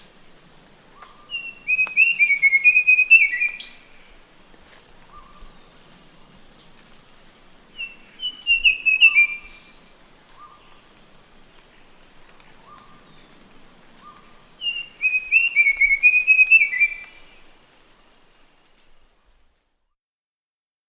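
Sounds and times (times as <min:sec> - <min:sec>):
sikatan biru muda bird singing: 0:00.9 - 0:04.2, 0:07.8 - 0:10.9, 0:11.8 - 0:18.3.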